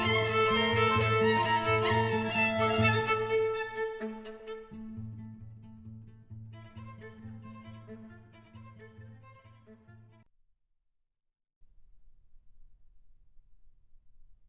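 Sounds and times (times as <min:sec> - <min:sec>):
string quartet: 0:00.0 - 0:10.2.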